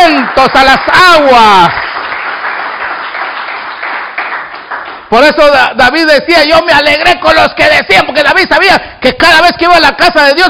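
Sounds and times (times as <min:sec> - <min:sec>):
audience clapping: 0:00.0 - 0:05.7
speech: 0:00.4 - 0:01.8, 0:05.1 - 0:10.4.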